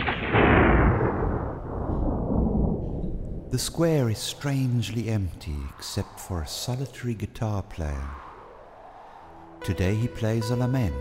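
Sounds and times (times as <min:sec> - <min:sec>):
distant thunder: 0:00.0 - 0:05.8
speech: 0:03.5 - 0:08.2, 0:09.6 - 0:10.9.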